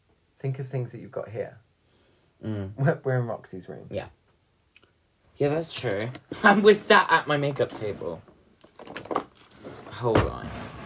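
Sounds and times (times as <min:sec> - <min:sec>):
speech: 0:00.4 - 0:01.7, 0:02.4 - 0:04.2, 0:05.4 - 0:08.9, 0:10.0 - 0:10.6
drawers being opened: 0:07.4 - 0:10.8.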